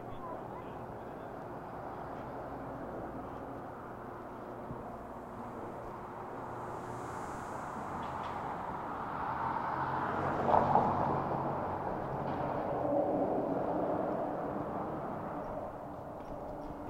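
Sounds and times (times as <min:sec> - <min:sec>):
traffic and road noise from Harlem to the Bronx: 0:00.0 - 0:16.8
vehicle passing: 0:00.6 - 0:16.8.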